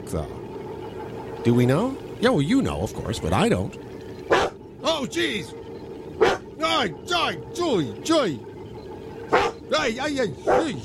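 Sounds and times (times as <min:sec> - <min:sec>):
speech: 0:00.1 - 0:00.4, 0:01.4 - 0:05.6, 0:06.6 - 0:08.5, 0:09.7 - 0:10.8
dog barking: 0:04.3 - 0:04.6, 0:06.2 - 0:06.4, 0:09.3 - 0:09.6, 0:10.5 - 0:10.7.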